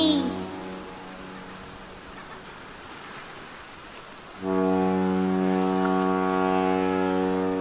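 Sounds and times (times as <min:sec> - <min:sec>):
big boat horn blast: 0:00.0 - 0:02.4, 0:04.3 - 0:07.5
water noise: 0:00.0 - 0:07.5.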